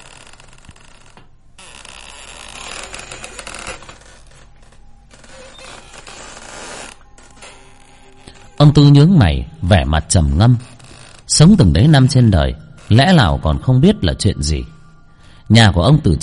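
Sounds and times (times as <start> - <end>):
hammock creaking against wooden bar: 0.0 - 9.0, 9.8 - 13.3
speech: 8.8 - 10.7, 11.3 - 14.7, 15.5 - 16.2.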